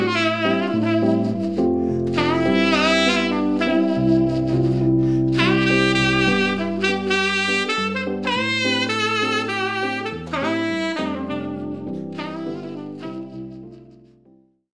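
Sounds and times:
saxophone in a sax and piano duo: 0.0 - 14.2
piano in a sax and piano duo: 0.0 - 14.6.

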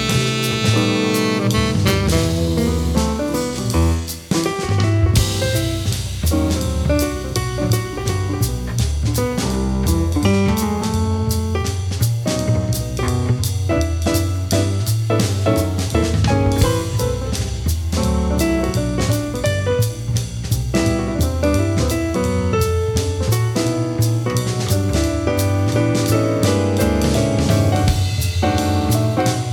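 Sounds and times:
jazz quartet playing in a studio: 0.0 - 29.5.

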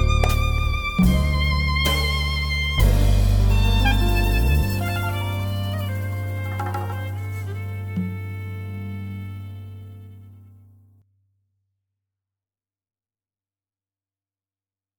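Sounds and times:
jazz quartet with violin: 0.0 - 10.6.

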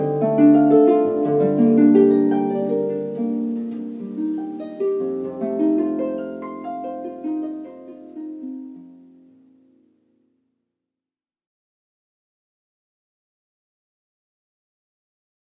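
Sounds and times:
harp playing: 0.0 - 9.9.

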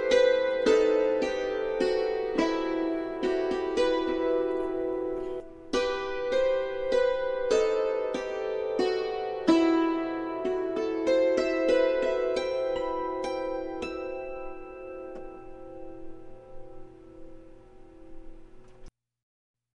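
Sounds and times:
hammered dulcimer: 0.0 - 17.4.

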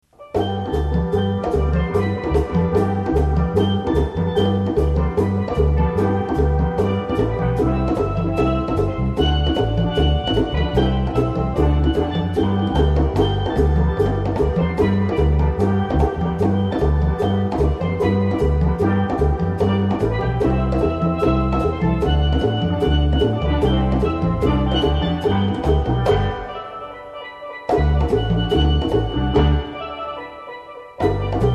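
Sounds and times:
steel pan band playing: 0.1 - 31.5.

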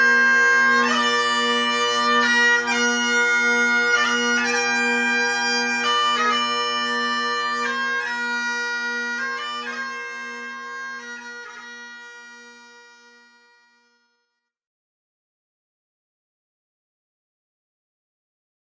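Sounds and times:
Highland bagpipes: 0.0 - 14.5.

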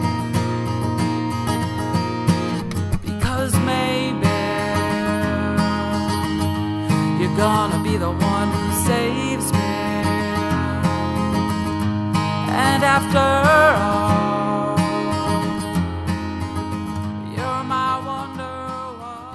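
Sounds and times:
acoustic guitar: 0.0 - 19.3
pop singer singing solo: 3.2 - 11.4, 12.5 - 15.8, 17.3 - 19.3.

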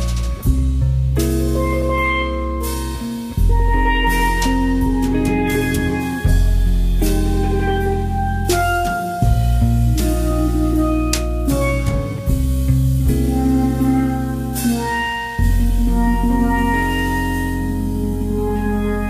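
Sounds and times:
jazz quartet playing: 0.0 - 19.0.

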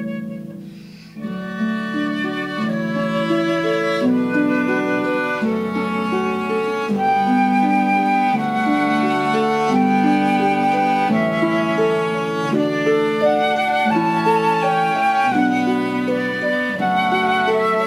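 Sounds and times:
cello in a trio: 0.0 - 17.8
flute in a trio: 0.0 - 17.8
harp in a trio: 0.0 - 17.8.

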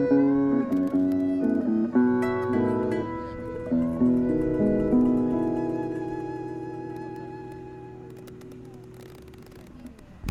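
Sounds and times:
guitar: 0.0 - 10.0
processional violin: 0.0 - 10.0
mandolin: 0.0 - 10.2.

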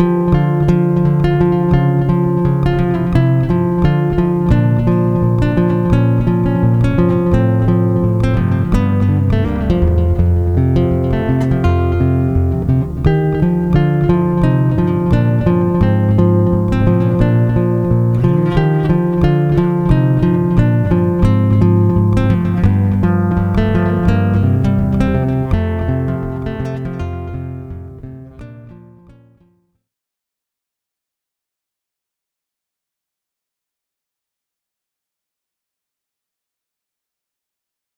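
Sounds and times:
acoustic instrumental medley on acoustic guitar: 0.0 - 29.5.

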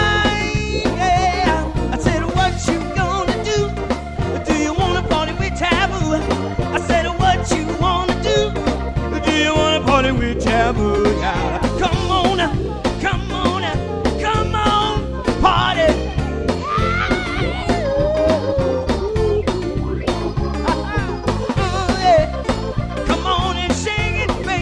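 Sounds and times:
variety band playing: 0.0 - 24.5
laughter: 10.4 - 24.5.

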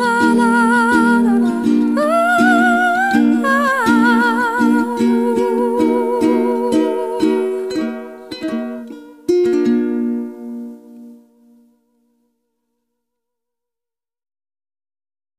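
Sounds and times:
ukulele: 0.0 - 11.7.

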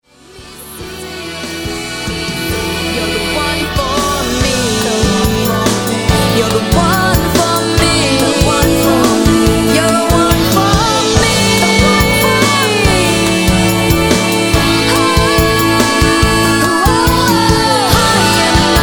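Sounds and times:
variety band playing: 0.2 - 18.8.

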